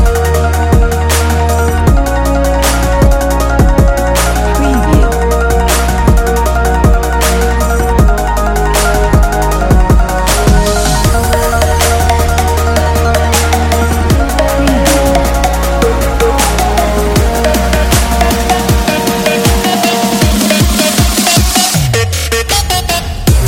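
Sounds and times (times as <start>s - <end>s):
trap background music: 0.0s - 23.4s.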